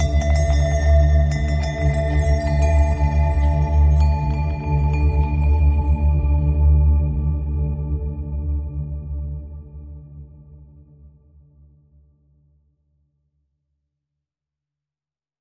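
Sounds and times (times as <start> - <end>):
ambient music: 0.0 - 9.4.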